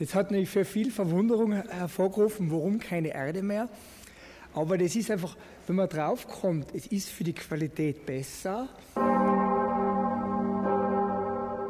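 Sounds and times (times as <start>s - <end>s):
speech: 0.0s - 9.3s
newly cast large bronze bell ringing in a tall foundry hall: 9.0s - 11.6s.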